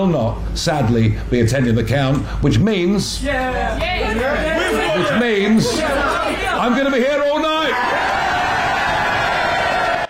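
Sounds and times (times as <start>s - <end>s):
speech: 0.0s - 8.2s
laughter: 4.4s - 7.1s
crowd screaming and cheering for Nigel Farage at the Clacton election count: 7.5s - 10.0s.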